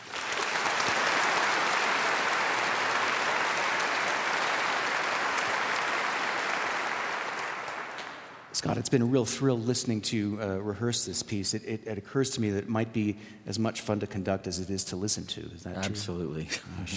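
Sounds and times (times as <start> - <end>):
symphony concert audience applause welcoming the resident conductor: 0.0 - 8.5
speech: 8.6 - 16.9.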